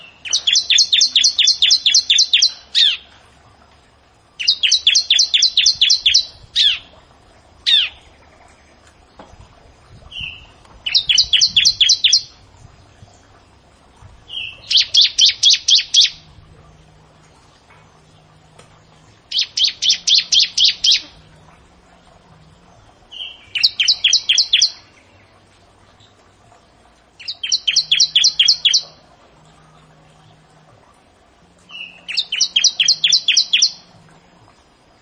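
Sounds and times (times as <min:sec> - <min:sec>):
bar-winged prinia song of sharp high chirps: 0:00.0 - 0:03.1, 0:04.4 - 0:07.0, 0:10.1 - 0:13.3, 0:14.3 - 0:16.2, 0:19.3 - 0:21.2, 0:23.1 - 0:25.4, 0:27.2 - 0:29.0, 0:31.7 - 0:33.9.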